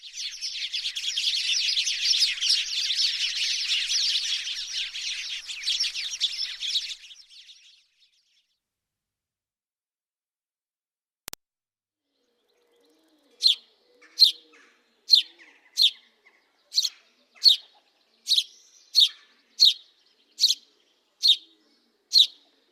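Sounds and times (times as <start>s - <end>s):
house sparrows chattering: 0.0s - 8.5s, 12.3s - 22.6s.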